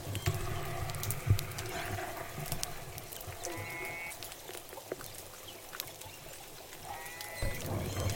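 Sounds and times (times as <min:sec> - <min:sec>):
J pod Southern Resident killer whales calling underwater: 0:00.2 - 0:04.3, 0:06.8 - 0:08.0
orca whistle-like calls: 0:03.4 - 0:04.1.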